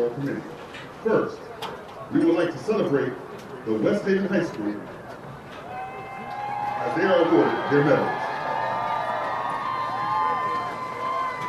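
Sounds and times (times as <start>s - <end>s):
speech: 0.0s - 5.0s, 6.8s - 8.2s
crowd applauding: 5.7s - 11.4s.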